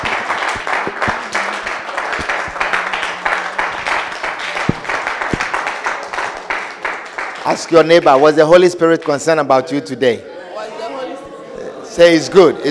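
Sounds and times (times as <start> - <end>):
audience clapping: 0.0 - 8.6
speech: 7.4 - 10.3, 12.0 - 12.6.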